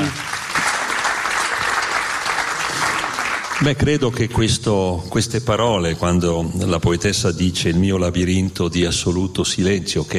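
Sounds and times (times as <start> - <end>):
audience applause after a poetry reading of unpublished poems: 0.0 - 4.0
speech: 3.6 - 10.1.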